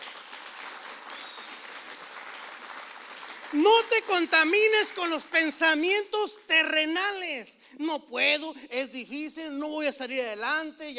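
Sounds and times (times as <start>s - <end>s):
audience applause: 0.0s - 5.3s
speech: 3.5s - 10.9s.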